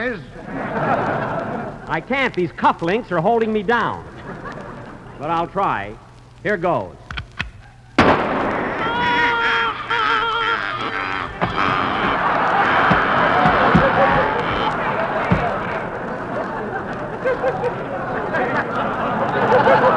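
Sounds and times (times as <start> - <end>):
speech: 0.0 - 1.0, 1.9 - 4.1, 5.2 - 7.0
laughter: 0.0 - 6.0, 6.7 - 19.9
shotgun blasts while target shooting: 8.0 - 8.8.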